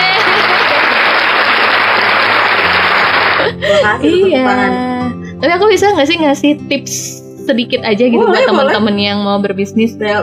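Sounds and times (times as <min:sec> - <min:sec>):
crowd applause: 0:00.0 - 0:03.6
speech: 0:03.7 - 0:10.2.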